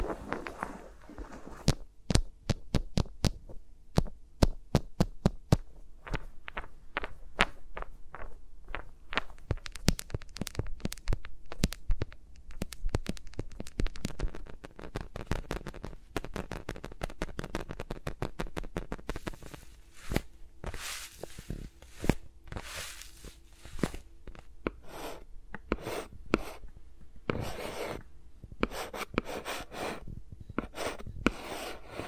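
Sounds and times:
faint low hum: 0:00.0 - 0:32.0
fingers rubbing and tapping around microphones: 0:01.6 - 0:20.3.

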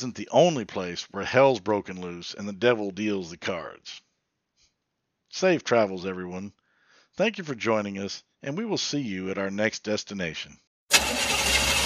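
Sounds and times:
speech: 0:00.0 - 0:04.0, 0:05.3 - 0:06.6, 0:07.2 - 0:10.6
car engine in trouble during a breakdown: 0:10.9 - 0:11.8.

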